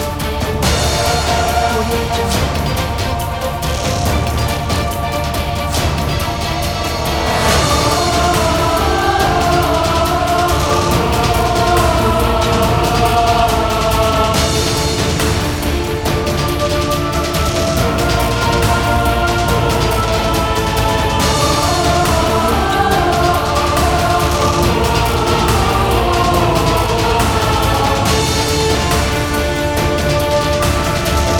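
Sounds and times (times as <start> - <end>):
epic cinematic trailer music: 0.0 - 31.3.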